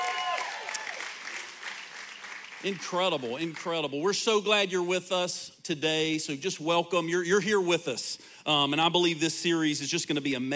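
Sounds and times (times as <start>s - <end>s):
voices cheering: 0.0s - 1.3s
audience applause at a church service: 0.0s - 3.6s
speech: 2.6s - 10.5s.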